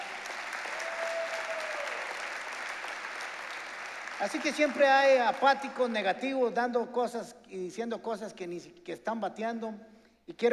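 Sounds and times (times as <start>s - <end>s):
audience applause: 0.0s - 6.0s
speech: 4.2s - 10.5s.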